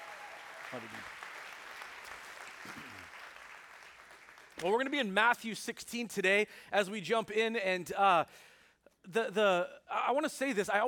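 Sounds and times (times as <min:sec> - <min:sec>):
church congregation applause welcoming a man into a new role: 0:00.0 - 0:04.6
speech: 0:00.7 - 0:01.2, 0:02.6 - 0:03.2, 0:04.6 - 0:10.8.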